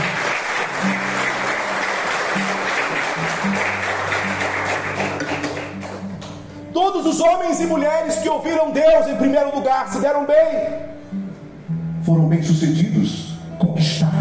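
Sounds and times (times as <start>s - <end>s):
audience applause: 0.0s - 6.4s
speech: 6.8s - 10.8s, 12.0s - 13.7s.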